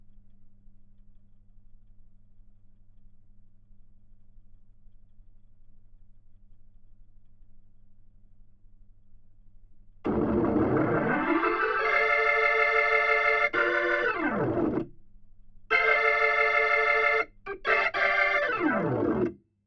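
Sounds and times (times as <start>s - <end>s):
Hammond organ: 10.1s - 14.9s, 15.7s - 19.4s.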